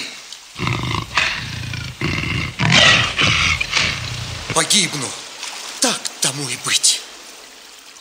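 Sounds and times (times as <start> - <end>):
lion roaring: 0.6 - 5.0
speech: 4.6 - 5.2, 5.8 - 7.0.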